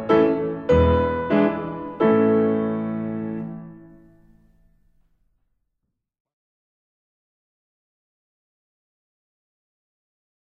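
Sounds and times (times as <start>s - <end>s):
piano performance: 0.0s - 4.7s.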